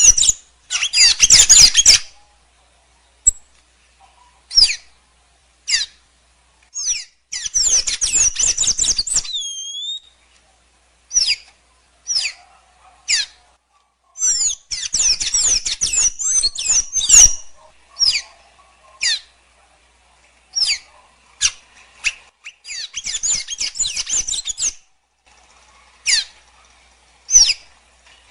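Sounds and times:
blue dacnis singing high twittering and chips: 0.0s - 2.2s, 4.4s - 5.0s, 6.8s - 10.2s, 11.1s - 12.5s, 14.2s - 18.4s, 20.5s - 24.8s, 27.3s - 27.7s.

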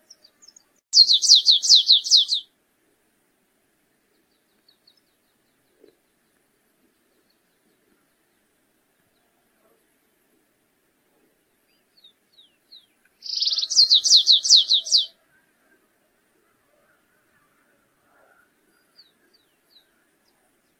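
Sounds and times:
stripe-tailed yellow finch song with buzzing trill and down-slurred notes: 1.0s - 2.4s, 13.2s - 15.1s.

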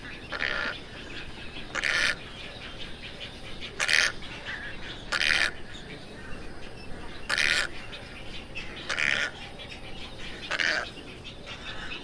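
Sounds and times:
tricolored heron squawks: 0.0s - 2.7s, 3.6s - 5.8s, 7.2s - 8.0s, 8.6s - 9.4s, 10.2s - 12.0s.

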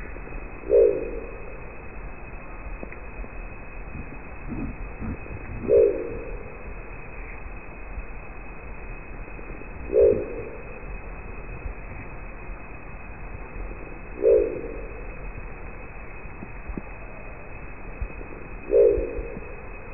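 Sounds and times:
crested owl giving a deep guttural growl: 0.6s - 1.8s, 4.4s - 6.7s, 9.7s - 10.9s, 13.9s - 15.2s, 18.2s - 19.7s.

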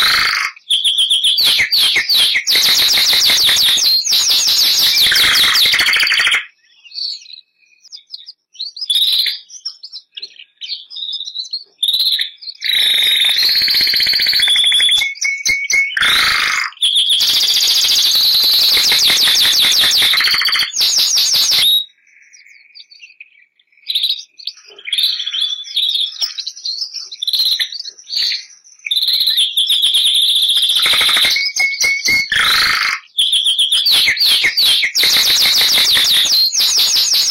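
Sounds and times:
Bernois canary singing trills: 0.0s - 37.3s.

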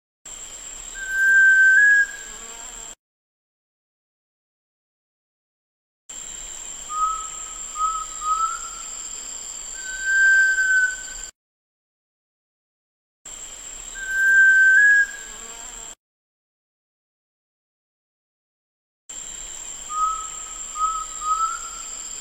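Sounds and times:
sunbittern whistling: 1.0s - 2.3s, 6.9s - 9.0s, 9.8s - 11.3s, 13.9s - 15.3s, 19.9s - 22.0s.

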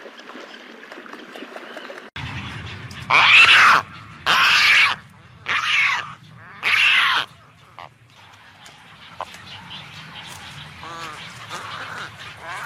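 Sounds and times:
pelican hoarse squealing cries: 3.1s - 7.9s.

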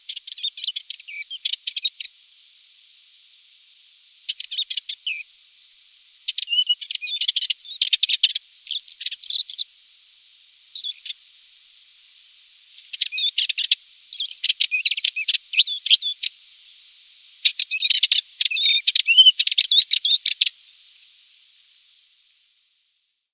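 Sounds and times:
Atlas warbler singing: 0.0s - 2.1s, 4.3s - 5.3s, 6.3s - 9.7s, 10.8s - 11.2s, 12.8s - 16.3s, 17.4s - 20.5s.

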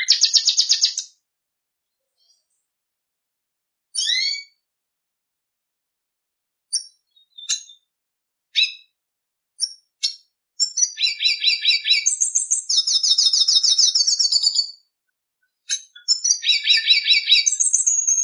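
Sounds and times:
red siskin singing with twittering phrases, chirps, trills and buzzy notes: 0.0s - 1.1s, 3.9s - 4.6s, 6.7s - 7.9s, 8.6s - 9.0s, 9.6s - 14.8s, 15.5s - 18.2s.

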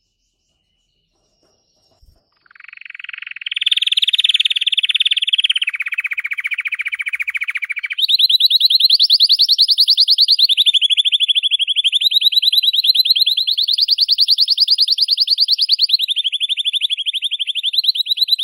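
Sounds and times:
blue Belgian canary singing: 0.0s - 18.4s.

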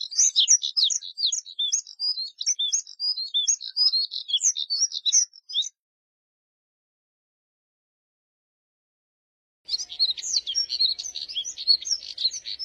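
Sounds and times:
Moussier's redstart twittering warble: 0.0s - 5.7s, 9.7s - 12.6s.

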